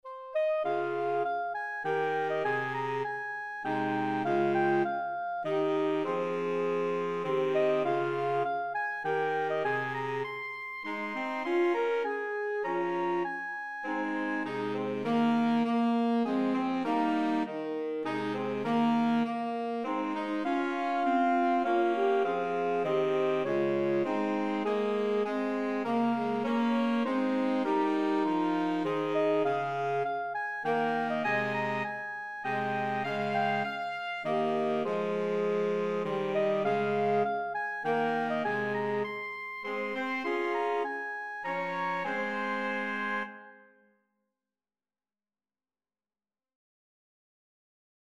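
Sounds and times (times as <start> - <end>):
saxophone quartet playing: 0.3 - 43.5.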